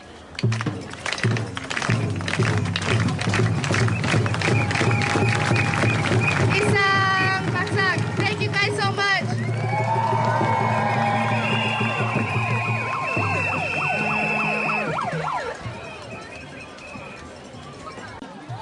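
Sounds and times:
crowd performing a rhythmic unity clap: 0:00.3 - 0:17.1
cheers and whoops: 0:04.3 - 0:06.6, 0:09.2 - 0:16.2.

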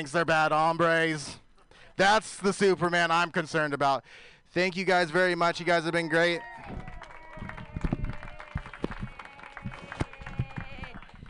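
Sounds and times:
speech: 0:00.0 - 0:01.4, 0:02.0 - 0:06.9
audience applause after comedy set: 0:06.3 - 0:11.2.

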